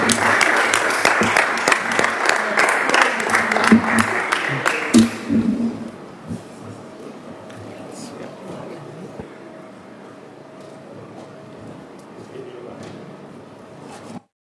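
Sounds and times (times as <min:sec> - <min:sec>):
audience applause: 0:00.0 - 0:05.9
faint murmurs: 0:02.3 - 0:13.2.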